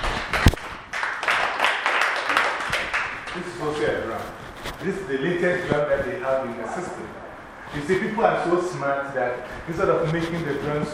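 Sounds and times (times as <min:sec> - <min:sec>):
people clapping their hands: 0:00.0 - 0:03.5
speech: 0:03.6 - 0:10.9.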